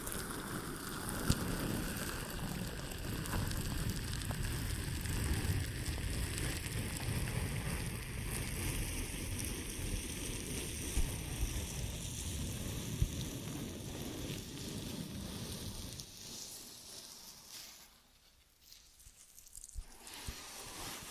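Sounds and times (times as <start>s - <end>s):
crackly rubbing and scratching of ear and scalp massage: 0.0s - 21.1s
soft touches: 14.3s - 21.1s.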